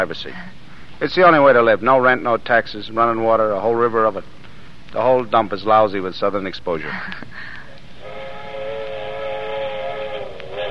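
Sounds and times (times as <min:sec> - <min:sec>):
speech: 0:00.0 - 0:07.6
train whistle blowing: 0:08.0 - 0:10.7.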